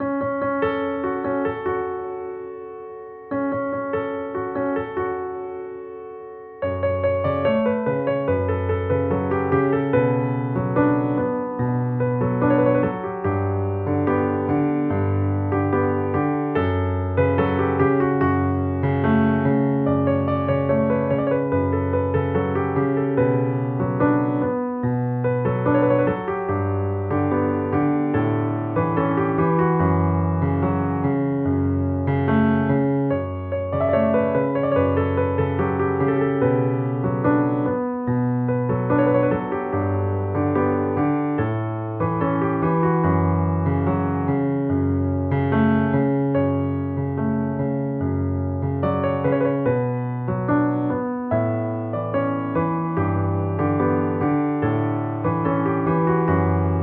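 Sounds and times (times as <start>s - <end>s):
piano: 0.0s - 56.8s.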